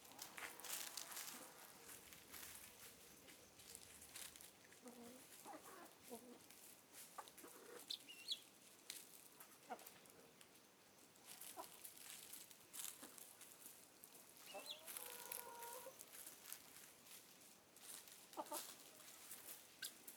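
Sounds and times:
chickens clucking outside the coop: 0.0 - 10.4, 11.2 - 13.6, 14.2 - 20.1.

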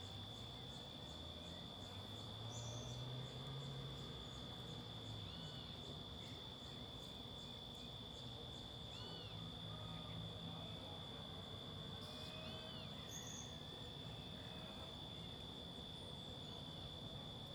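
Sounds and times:
crickets trilling: 0.0 - 17.5.

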